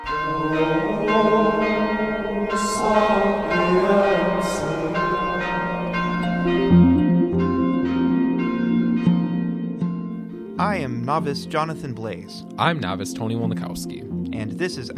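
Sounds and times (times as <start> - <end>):
church bells ringing: 0.0 - 10.5
speech: 11.1 - 14.9.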